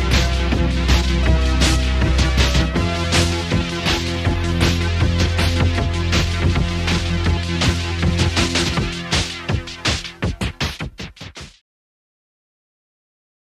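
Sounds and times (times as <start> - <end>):
Juno60 synthesizer: 0.0 - 11.6.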